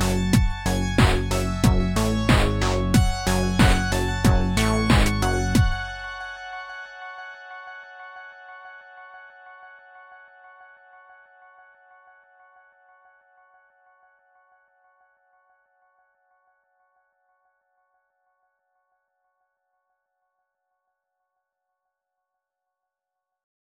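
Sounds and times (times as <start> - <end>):
drums: 0.0 - 6.0.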